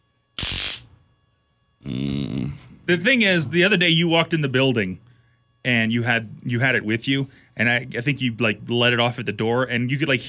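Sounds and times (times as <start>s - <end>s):
cattle prod zapping: 0.4s - 1.0s
speech: 2.9s - 10.2s.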